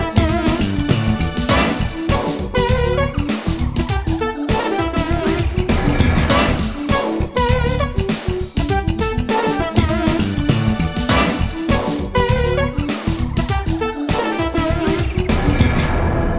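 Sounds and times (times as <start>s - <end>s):
groovy music: 0.0s - 16.2s.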